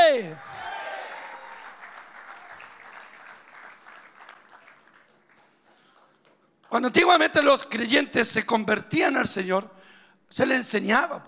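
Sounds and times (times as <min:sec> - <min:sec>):
audience applause: 0:00.4 - 0:06.5
speech: 0:06.8 - 0:11.2.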